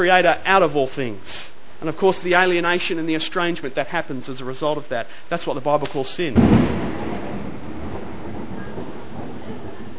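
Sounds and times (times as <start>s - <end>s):
speech: 0.0s - 7.0s
thunder rumbling: 6.3s - 9.9s.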